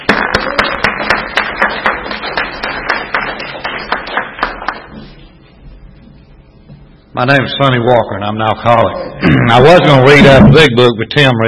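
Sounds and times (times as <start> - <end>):
small audience at an alcoholics' recovery meeting clapping to welcome a speaker: 0.0 - 5.2
speech: 7.2 - 11.4.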